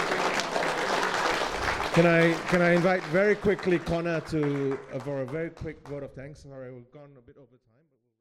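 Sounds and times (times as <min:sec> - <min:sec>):
audience applause for the speakers: 0:00.0 - 0:05.5
speech: 0:02.0 - 0:07.8.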